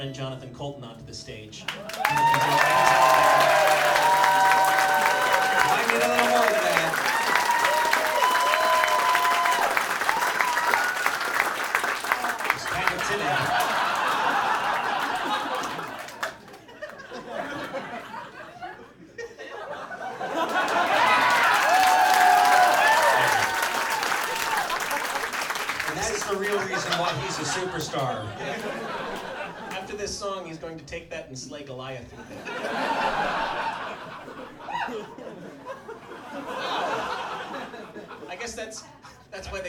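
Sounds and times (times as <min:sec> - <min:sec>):
speech: 0:00.0 - 0:04.1, 0:30.9 - 0:32.7
audience applause: 0:01.7 - 0:17.8, 0:20.2 - 0:29.4
cheers and laughter: 0:01.8 - 0:11.2, 0:12.2 - 0:29.8, 0:32.4 - 0:38.2.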